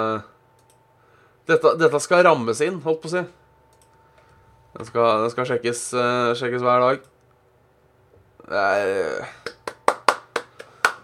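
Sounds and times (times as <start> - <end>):
speech: 0.0 - 0.3, 1.5 - 3.4, 4.7 - 7.1, 8.5 - 9.5
hand clapping: 9.4 - 11.0.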